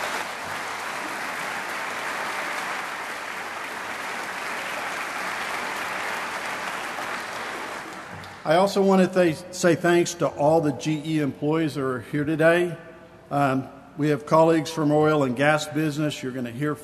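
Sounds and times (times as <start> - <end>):
audience clapping: 0.0 - 8.5
speech: 8.4 - 16.8.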